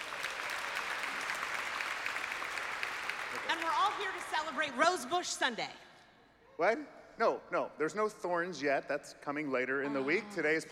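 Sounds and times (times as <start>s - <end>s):
audience applause: 0.0s - 4.7s
speech: 3.5s - 5.8s, 6.6s - 10.7s.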